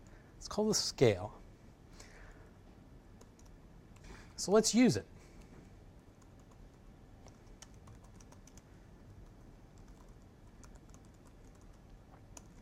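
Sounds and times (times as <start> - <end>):
speech: 0.4 - 1.4, 4.4 - 5.1
fast typing on a computer keyboard while writing D3 code: 3.2 - 3.6, 6.2 - 12.5.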